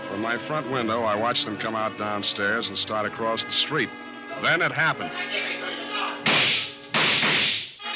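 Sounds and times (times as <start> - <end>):
speech: 0.2 - 5.6
gunshots fired at range with pellets in an audio drama: 6.2 - 7.8.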